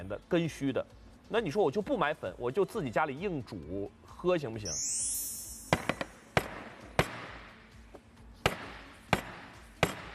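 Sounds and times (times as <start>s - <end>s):
speech: 0.0s - 5.2s
something pounding hard on a tabletop: 5.7s - 7.4s, 8.4s - 10.1s.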